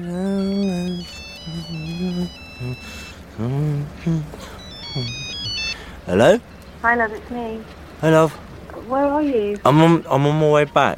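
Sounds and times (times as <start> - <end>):
voice murmuring: 0.0 - 6.4
telephone ringing with electronic ringtone: 0.3 - 3.3, 4.4 - 5.9
speech: 6.1 - 10.9.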